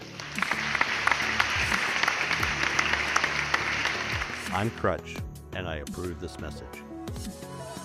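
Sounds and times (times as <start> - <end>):
crowd applauding: 0.0 - 4.8
speech: 4.6 - 7.4.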